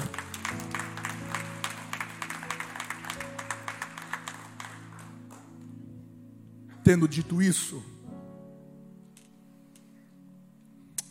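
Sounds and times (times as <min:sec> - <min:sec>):
audience applause: 0:00.0 - 0:05.7
speech: 0:06.9 - 0:07.9.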